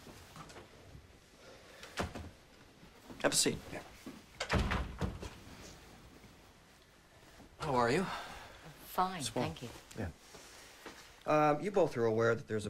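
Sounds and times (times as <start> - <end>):
speech: 3.2 - 3.9, 7.7 - 8.2, 9.0 - 10.3, 11.3 - 12.6
door closing: 4.4 - 5.4.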